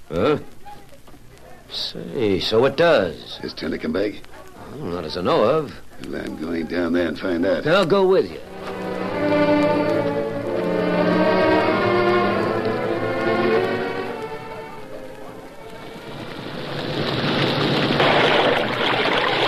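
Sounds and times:
speech: 0:00.1 - 0:00.6, 0:01.7 - 0:08.7
humming tonal drone: 0:08.4 - 0:16.9
logs tumbling and splashing into a creek: 0:16.5 - 0:19.4.

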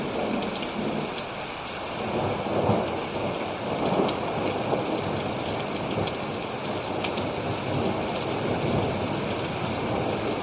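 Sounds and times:
low rolling thunder: 0:00.0 - 0:01.2, 0:02.0 - 0:10.4
thunderstorm rain hissing: 0:00.0 - 0:10.4.

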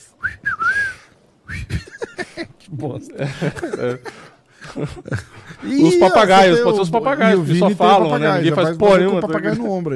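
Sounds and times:
person whistling imitation of great kiskadee call: 0:00.2 - 0:01.8
laughter: 0:01.6 - 0:09.9
speech: 0:02.7 - 0:04.2, 0:04.8 - 0:09.9.

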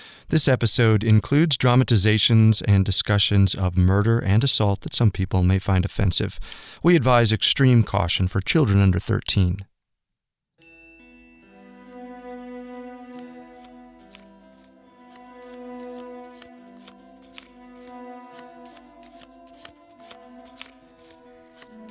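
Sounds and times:
speech: 0:00.3 - 0:09.7
sustained musical drone: 0:10.6 - 0:21.8
deck of playing cards being shuffled: 0:12.6 - 0:21.8.

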